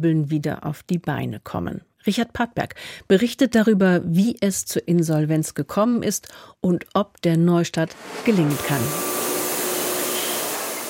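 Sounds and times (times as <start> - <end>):
speech: 0.0 - 9.2
saw cutting through five-metre-long wooden planks: 7.9 - 10.8.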